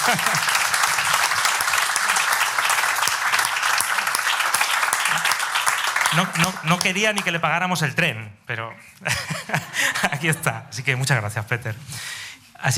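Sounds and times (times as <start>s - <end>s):
laughter: 0.0s - 0.8s, 9.0s - 10.4s
audience applause: 0.0s - 7.4s
speech: 0.1s - 0.6s, 6.1s - 12.7s.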